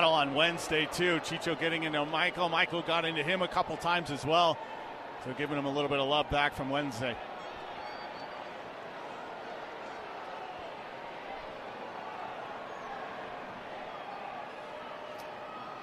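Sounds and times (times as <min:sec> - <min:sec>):
speech: 0:00.0 - 0:07.3
large stadium crowd booing: 0:00.0 - 0:15.8
high whistles from stadium crowd: 0:07.7 - 0:08.6.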